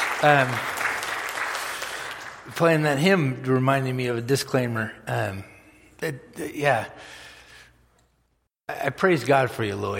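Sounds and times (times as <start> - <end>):
audience applause: 0.0 - 2.6
speech: 0.2 - 0.7, 2.5 - 7.2, 8.8 - 9.9.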